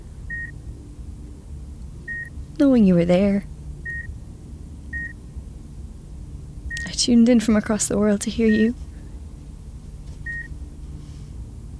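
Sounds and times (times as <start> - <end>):
patient monitor beeps: 0.3 - 0.6, 2.1 - 2.4, 3.8 - 4.1, 4.9 - 5.2, 6.7 - 6.9, 10.2 - 10.5
speech: 2.6 - 3.5, 7.1 - 8.9.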